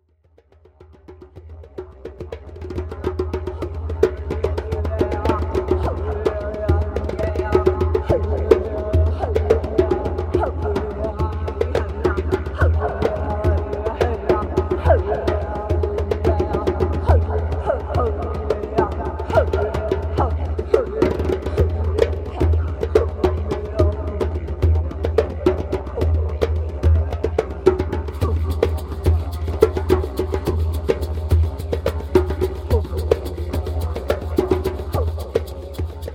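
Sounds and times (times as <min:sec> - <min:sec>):
sacred chant: 0:01.7 - 0:36.1.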